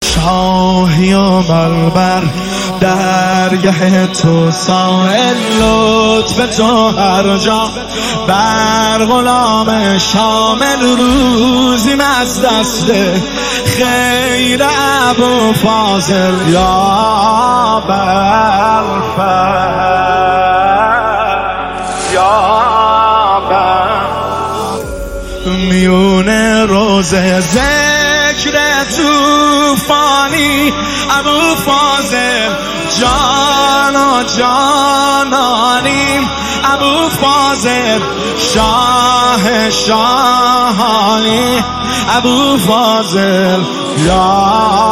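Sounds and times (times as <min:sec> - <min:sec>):
devotional singing: 0:00.0 - 0:44.9.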